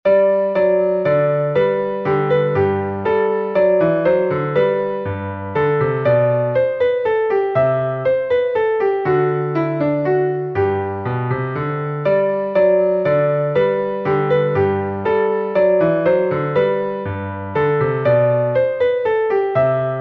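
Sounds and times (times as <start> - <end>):
minuet from an overture in G minor: 0.1 - 19.9.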